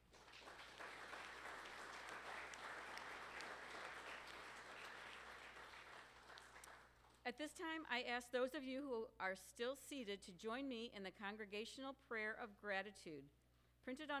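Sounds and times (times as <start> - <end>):
audience applause: 0.0 - 7.2
speech: 7.3 - 14.1.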